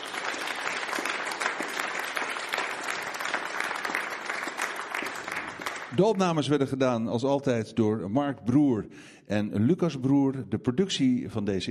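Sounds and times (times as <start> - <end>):
audience applause: 0.0 - 6.2
speech: 6.0 - 11.6.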